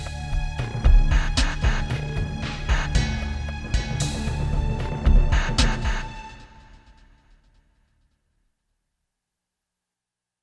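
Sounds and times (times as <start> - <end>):
drum remix music: 0.0 - 7.0.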